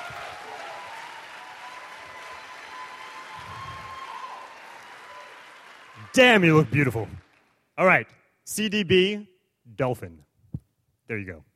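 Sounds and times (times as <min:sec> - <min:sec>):
crowd applause: 0:00.0 - 0:07.6
speech: 0:06.1 - 0:07.2, 0:07.8 - 0:10.3, 0:11.1 - 0:11.5.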